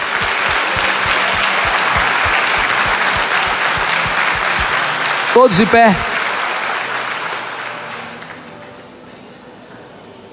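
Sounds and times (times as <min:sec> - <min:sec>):
audience applauding: 0:00.0 - 0:08.2
speech: 0:05.4 - 0:06.1.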